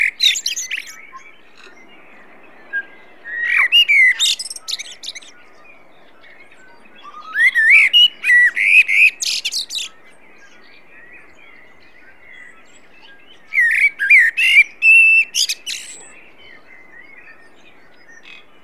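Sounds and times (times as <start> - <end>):
common blackbird Turdus merula singing: 0.0 - 18.6.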